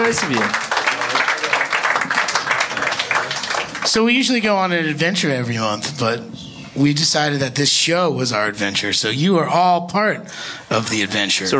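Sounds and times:
live show audience applause in Hamden Connecticut: 0.0 - 4.4
speech: 0.1 - 0.6, 3.9 - 11.5.

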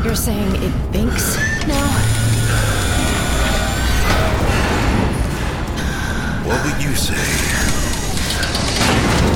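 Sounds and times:
speech: 0.1 - 2.7, 6.5 - 7.6
tram being crushed: 1.1 - 9.3.

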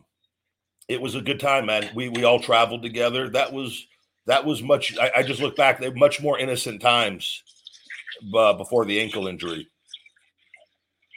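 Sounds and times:
speech: 0.9 - 9.7
dishes being washed: 1.5 - 2.7, 4.8 - 6.0, 7.0 - 10.1.

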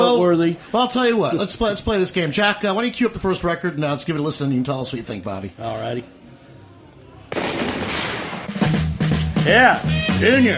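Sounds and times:
speech: 0.2 - 6.2, 9.4 - 10.5
shotgun blast: 7.3 - 8.6.

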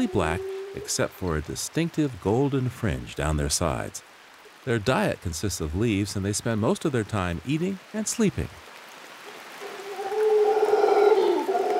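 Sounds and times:
large black monkeys with golden side fringe calling in Costa Rica: 0.0 - 1.0, 9.6 - 11.7
speech: 0.0 - 8.7.

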